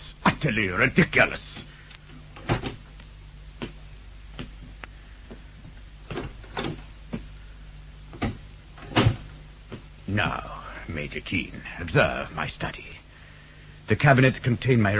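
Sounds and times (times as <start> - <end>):
speech: 0.4 - 1.6, 10.2 - 13.0, 13.9 - 14.9
door opening: 1.6 - 2.9, 6.0 - 7.3, 8.1 - 9.9.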